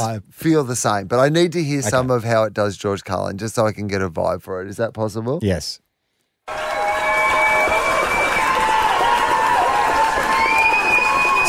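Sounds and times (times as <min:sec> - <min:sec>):
speech: 0:00.0 - 0:05.8, 0:06.5 - 0:06.7
AI-generated crowd roar: 0:06.5 - 0:11.4.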